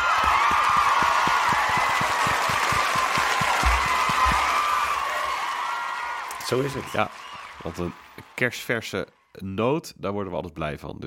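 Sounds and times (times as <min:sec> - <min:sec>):
hearty applause with many hands clapping: 0:00.0 - 0:08.7
speech: 0:06.5 - 0:11.0.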